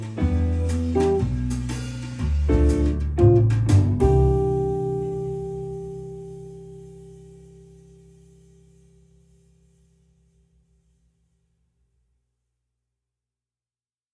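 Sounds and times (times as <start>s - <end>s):
guitars one and two: 0.0s - 7.7s.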